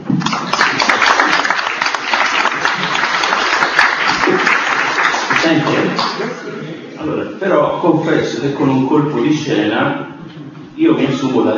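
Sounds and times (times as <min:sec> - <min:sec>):
audience applause: 0:00.0 - 0:06.4
speech: 0:07.4 - 0:10.1, 0:10.8 - 0:11.5.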